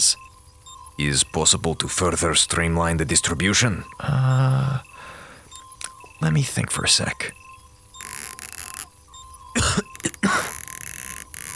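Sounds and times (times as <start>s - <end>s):
speech: 1.0s - 4.9s, 6.2s - 7.4s
person coughing: 9.6s - 10.6s.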